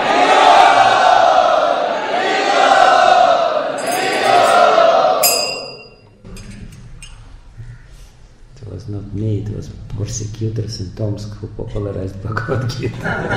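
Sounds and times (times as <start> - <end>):
audience chanting to welcome a visiting spiritual speaker: 0.0 - 5.9
speech: 10.0 - 13.3
laughter: 12.5 - 13.3.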